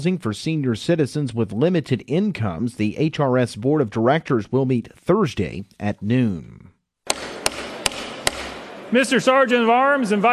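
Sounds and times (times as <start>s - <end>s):
speech: 0.0s - 6.7s, 8.9s - 10.3s
gavel striking to open the 2020 legislative session in Nashville: 7.1s - 8.6s.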